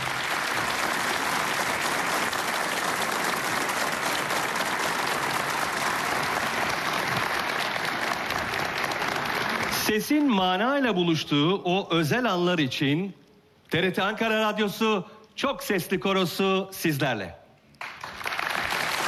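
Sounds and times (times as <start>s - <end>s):
audience applause welcoming conductor on stage: 0.0s - 10.0s, 17.8s - 19.0s
speech: 9.9s - 17.4s.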